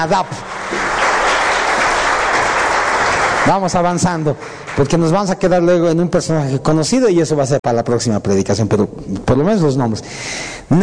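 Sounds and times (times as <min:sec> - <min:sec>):
speech: 0:00.0 - 0:00.9, 0:03.4 - 0:10.8
audience applause: 0:00.0 - 0:05.5.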